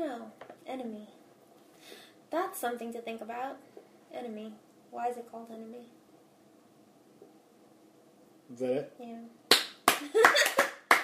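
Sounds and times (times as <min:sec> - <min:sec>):
speech: 0:00.0 - 0:01.2, 0:01.9 - 0:06.0, 0:08.5 - 0:09.4, 0:10.0 - 0:10.6
hand claps: 0:09.5 - 0:11.0.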